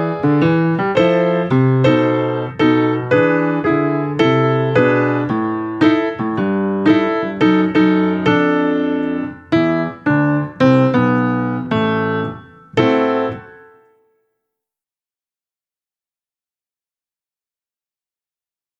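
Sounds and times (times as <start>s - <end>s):
piano: 0.0s - 14.3s.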